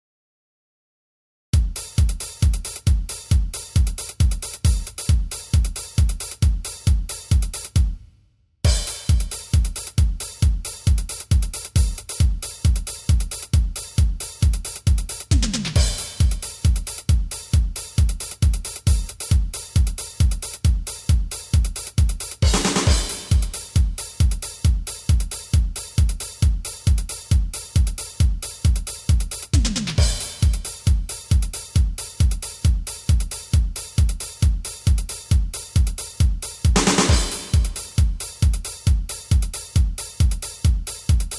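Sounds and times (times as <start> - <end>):
drum test: 1.6 - 41.3.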